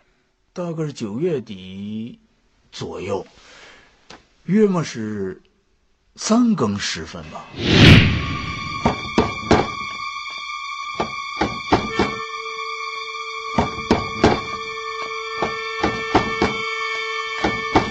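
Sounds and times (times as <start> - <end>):
speech: 0.6 - 3.6, 4.5 - 5.5, 6.2 - 7.8
knocking on a door: 8.8 - 9.8, 11.0 - 12.2, 13.6 - 14.7, 15.4 - 16.7, 17.4 - 17.9.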